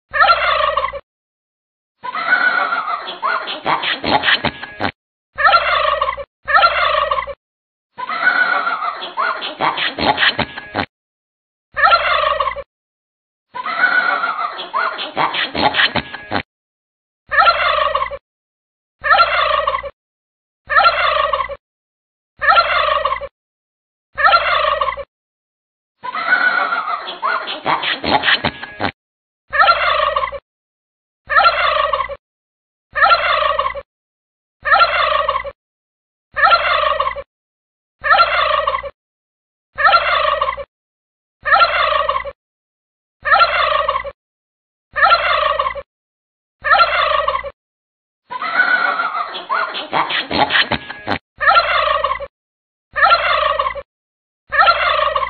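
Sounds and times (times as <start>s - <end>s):
laughter: 0.1s - 1.0s, 2.0s - 7.4s, 8.0s - 10.9s, 11.7s - 12.7s, 13.5s - 16.4s, 17.3s - 18.2s, 19.0s - 20.0s, 20.7s - 21.6s, 22.4s - 23.3s, 24.2s - 25.1s, 26.0s - 30.4s, 31.3s - 32.2s, 32.9s - 33.9s, 34.6s - 35.6s, 36.4s - 37.3s, 38.0s - 39.0s, 39.8s - 40.7s, 41.4s - 42.4s, 43.2s - 44.2s, 45.0s - 45.9s, 46.6s - 47.6s, 48.3s - 52.3s, 52.9s - 53.9s, 54.5s - 55.2s
turkey calling: 0.2s - 1.0s, 5.4s - 7.4s, 11.8s - 12.6s, 17.4s - 18.2s, 19.1s - 19.9s, 20.8s - 21.6s, 22.4s - 23.3s, 24.2s - 25.0s, 29.6s - 30.4s, 31.4s - 32.2s, 33.0s - 33.8s, 34.7s - 35.6s, 36.4s - 37.2s, 38.0s - 38.9s, 39.8s - 40.7s, 41.5s - 42.3s, 43.3s - 44.1s, 45.0s - 45.8s, 46.7s - 47.5s, 48.5s - 52.3s, 53.0s - 53.8s, 54.6s - 55.2s.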